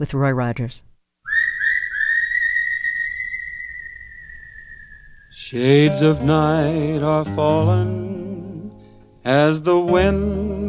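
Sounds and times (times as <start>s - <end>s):
speech: 0.0s - 0.9s, 5.4s - 8.5s, 9.2s - 10.6s
whistling: 1.2s - 5.6s.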